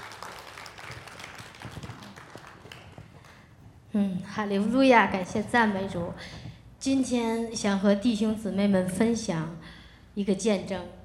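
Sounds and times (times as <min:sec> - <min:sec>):
audience applause: 0:00.0 - 0:03.5
speech: 0:03.9 - 0:09.6, 0:10.2 - 0:11.0.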